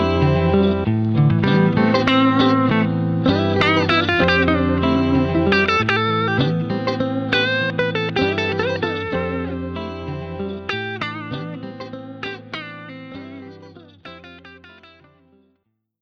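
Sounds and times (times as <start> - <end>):
Fender Strat electric guitar loop through Roland JC120 amplifier: 0.0 - 15.4.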